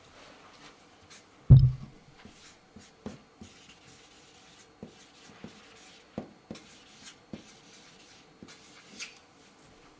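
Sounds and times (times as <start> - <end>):
thump: 1.5 - 1.9
writing on paper: 2.3 - 9.2.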